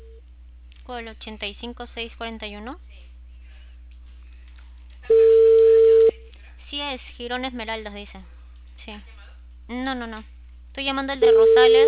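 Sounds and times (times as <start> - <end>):
low hum: 0.0 - 11.8
speech: 0.9 - 2.9, 6.7 - 9.1, 9.7 - 11.8
telephone tone on an unanswered call: 5.1 - 6.1, 11.2 - 11.8.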